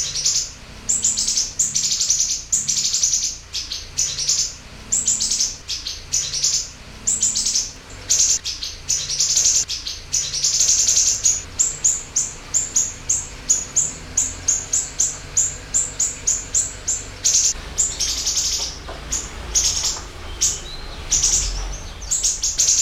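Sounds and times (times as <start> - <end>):
siri-siri chirping: 0.0 - 22.8.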